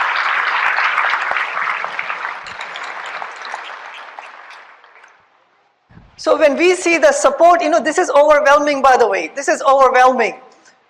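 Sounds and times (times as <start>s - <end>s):
crowd applause: 0.0s - 5.2s
speech: 6.2s - 10.8s.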